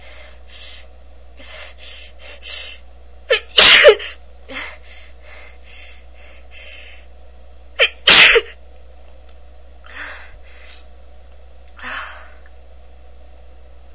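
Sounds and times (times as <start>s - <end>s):
woman coughing: 3.3s - 4.2s, 7.8s - 8.6s.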